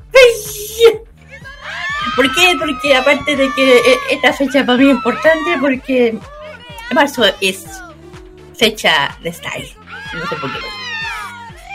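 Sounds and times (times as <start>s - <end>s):
loud high-pitched excited scream: 1.3s - 7.8s, 9.9s - 11.7s
speech: 2.2s - 7.8s, 8.6s - 10.8s.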